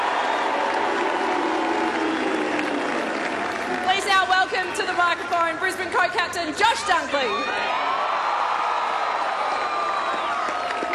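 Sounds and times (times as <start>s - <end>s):
audience applause: 0.0s - 5.3s, 7.7s - 10.9s
speech: 4.5s - 7.9s.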